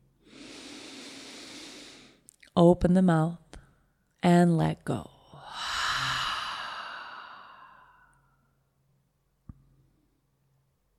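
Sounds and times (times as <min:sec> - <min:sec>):
huge deep breath in during a guided breathing exercise: 0:00.2 - 0:02.2, 0:05.4 - 0:08.5
speech: 0:02.6 - 0:03.4, 0:04.2 - 0:05.1.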